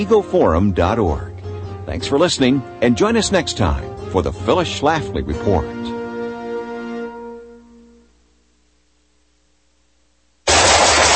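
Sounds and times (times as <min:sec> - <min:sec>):
speech: 0:00.0 - 0:01.3, 0:01.9 - 0:05.9
gunshot at a shooting range: 0:10.5 - 0:11.1.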